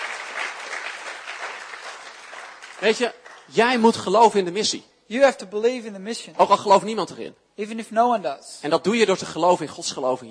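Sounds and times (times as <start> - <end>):
audience applause: 0.0 - 3.5
speech: 2.8 - 10.2.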